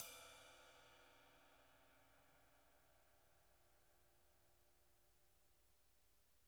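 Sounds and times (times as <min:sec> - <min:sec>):
ride cymbal: 0:00.0 - 0:02.2.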